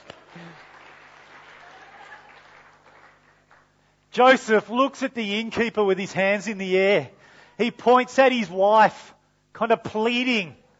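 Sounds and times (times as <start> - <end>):
audience clapping: 0.0 - 3.9
speech: 4.2 - 10.6.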